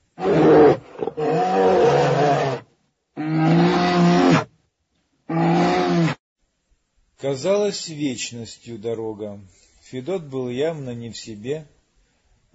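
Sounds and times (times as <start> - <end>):
wild beast roaring: 0.2 - 2.6, 3.2 - 4.5, 5.3 - 6.2
speech: 7.2 - 11.8.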